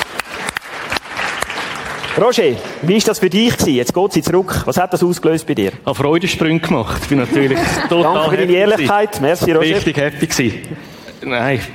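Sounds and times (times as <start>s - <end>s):
audience applause: 0.0s - 3.1s
speech: 2.2s - 11.7s
laughter: 6.9s - 10.0s.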